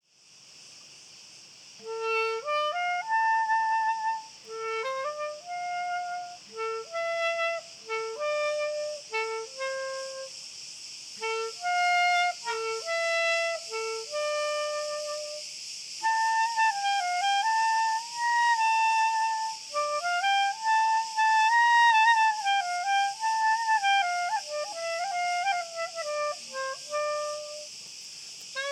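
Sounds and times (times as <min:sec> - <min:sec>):
cricket song continuous high shrill trill: 0:00.1 - 0:28.6.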